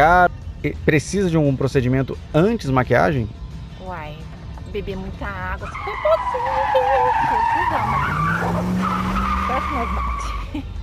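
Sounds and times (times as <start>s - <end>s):
car engine rumble: 0.0s - 10.8s
speech: 0.0s - 10.8s
tires skidding as a car brakes hard: 5.4s - 10.6s.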